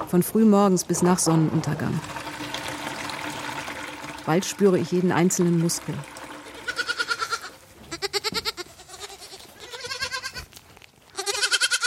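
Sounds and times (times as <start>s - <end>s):
speech: 0.1s - 2.4s, 4.2s - 6.2s
young goat kids bleating in a wooden stable during kidding season: 6.6s - 11.8s.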